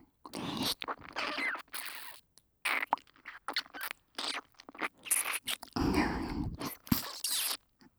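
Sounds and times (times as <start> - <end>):
ear licking: 0.3 - 7.6
kissing: 0.6 - 5.7, 6.6 - 7.6.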